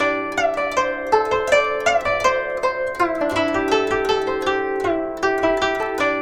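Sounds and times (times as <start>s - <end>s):
guqin playing in C: 0.0s - 6.2s.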